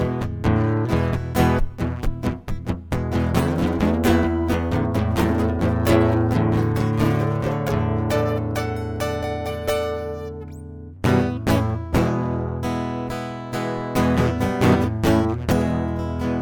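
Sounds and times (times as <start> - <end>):
acoustic music: 0.0 - 16.4.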